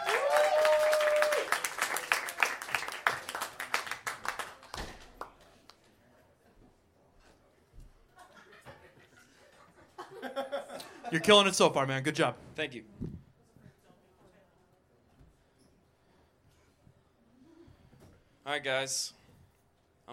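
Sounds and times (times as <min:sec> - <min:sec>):
comedy show audience applause: 0:00.0 - 0:05.4
laughter: 0:08.1 - 0:11.5
speech: 0:11.1 - 0:13.0, 0:18.6 - 0:19.2.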